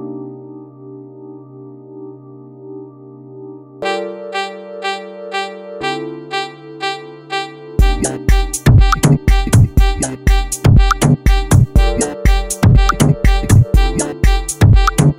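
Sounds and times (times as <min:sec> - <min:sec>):
saxophone dub mix: 0:03.8 - 0:15.1.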